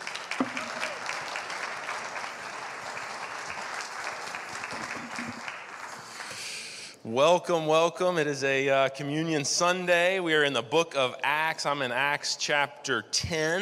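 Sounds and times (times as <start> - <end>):
audience clapping: 0.0 - 6.7
speech: 7.1 - 13.5.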